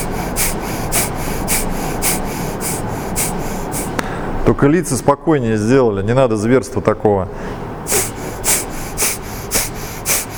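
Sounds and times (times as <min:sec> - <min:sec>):
forceful breaths through the left nostril during kriya breathing warm-up: 0:00.0 - 0:04.4, 0:07.4 - 0:10.3
noisy background: 0:00.0 - 0:10.3
speech: 0:04.5 - 0:07.5.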